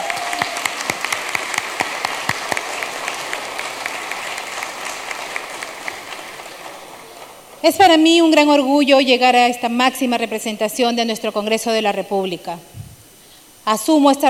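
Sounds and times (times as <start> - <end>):
audience applause: 0.0 - 8.4
speech: 7.6 - 12.7, 13.6 - 14.2.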